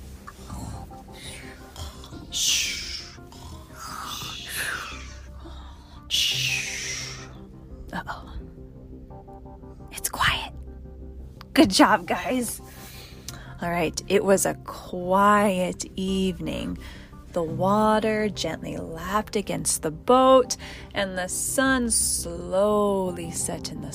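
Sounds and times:
children imitating snoring and sleepy breathing: 0:00.5 - 0:05.3
speech: 0:02.4 - 0:02.6, 0:11.6 - 0:12.6, 0:13.6 - 0:23.9.

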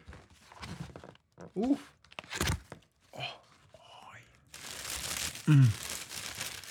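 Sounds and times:
speech: 0:01.5 - 0:02.0, 0:05.5 - 0:05.8
paper crinkling while unboxing Puma Slipstream sneakers: 0:04.5 - 0:06.6.

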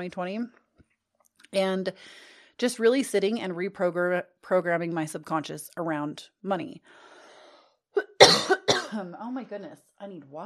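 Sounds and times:
speech: 0:00.0 - 0:00.6, 0:01.5 - 0:07.1, 0:08.9 - 0:10.4
throat-tickle cough: 0:08.0 - 0:09.1.

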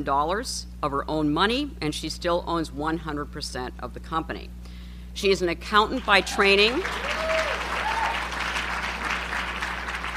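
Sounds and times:
speech: 0:00.0 - 0:07.2
crowd audience applause: 0:06.0 - 0:10.1.

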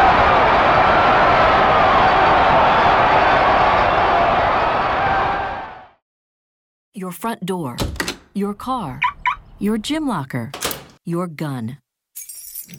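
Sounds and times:
stadium crowd of baseball fans cheering wildly: 0:00.0 - 0:06.0
speech: 0:07.1 - 0:11.8.

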